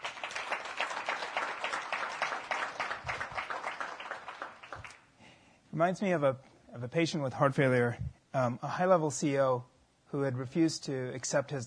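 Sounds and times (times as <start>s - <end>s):
crowd applause: 0.0s - 5.1s
speech: 5.8s - 11.6s.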